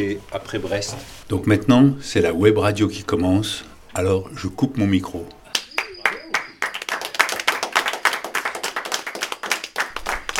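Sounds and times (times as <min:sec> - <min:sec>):
speech: 0:00.0 - 0:05.4
crowd applause: 0:05.5 - 0:10.3.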